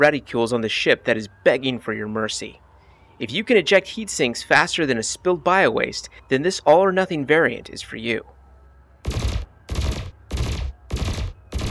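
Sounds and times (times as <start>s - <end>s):
speech: 0.0s - 2.6s, 3.2s - 8.4s
burst lasers firing in a space combat video game: 9.1s - 11.7s.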